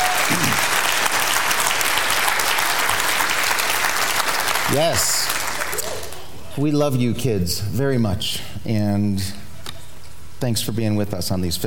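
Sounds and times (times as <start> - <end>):
crowd applause: 0.0 - 6.3
speech: 4.7 - 5.3, 6.6 - 9.4, 10.4 - 11.6.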